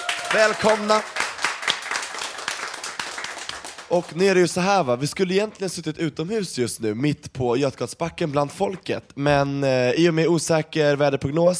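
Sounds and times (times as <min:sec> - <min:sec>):
applause: 0:00.0 - 0:04.4
speech: 0:00.3 - 0:01.2, 0:03.9 - 0:11.5.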